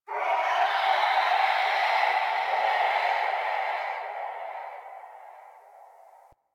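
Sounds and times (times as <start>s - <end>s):
ambience: 0.1s - 6.4s.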